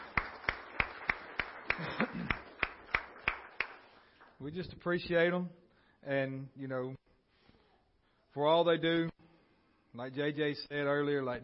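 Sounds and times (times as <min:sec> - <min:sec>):
audience clapping hands in a steady rhythm: 0:00.0 - 0:04.4
speech: 0:04.4 - 0:07.1, 0:08.4 - 0:09.1, 0:10.0 - 0:11.4.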